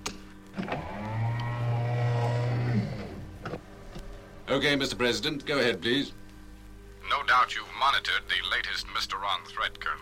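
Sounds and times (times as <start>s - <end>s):
sliding sound doors closing with motorized hum: 0.5s - 4.5s
speech: 4.5s - 6.2s, 7.2s - 9.9s.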